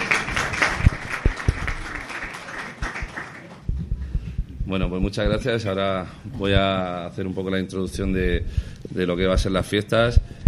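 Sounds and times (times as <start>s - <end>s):
audience applause: 0.0s - 3.7s
speech: 4.7s - 10.4s.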